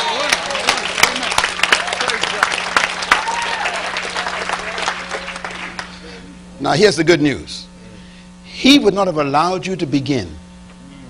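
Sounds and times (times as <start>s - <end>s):
church congregation clapping during a sermon: 0.0s - 6.1s
speech: 6.6s - 7.6s, 8.6s - 10.4s.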